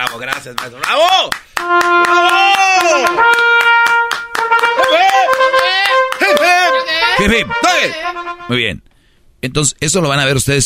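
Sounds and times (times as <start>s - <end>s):
speech: 0.0s - 3.4s, 7.2s - 10.6s
applause and clapping: 0.0s - 6.8s.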